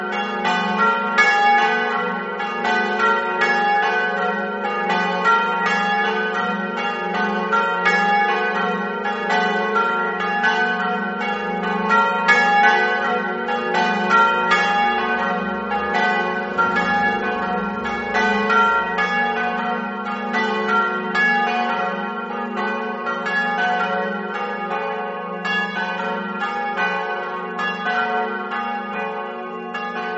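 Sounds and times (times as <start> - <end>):
bells ringing: 0.0 - 30.1.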